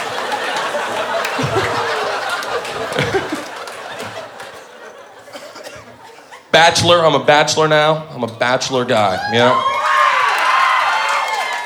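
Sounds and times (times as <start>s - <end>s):
audience applause: 0.0s - 5.0s, 9.7s - 11.6s
laughter: 0.0s - 6.5s
speech: 6.6s - 9.7s
whoops and shouts: 9.2s - 11.6s.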